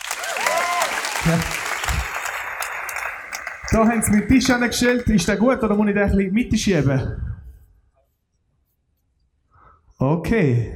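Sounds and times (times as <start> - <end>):
audience applause: 0.0 - 5.4
whoops and voices calling out: 0.2 - 1.1
speech: 1.2 - 2.1, 3.7 - 7.3, 10.2 - 10.7.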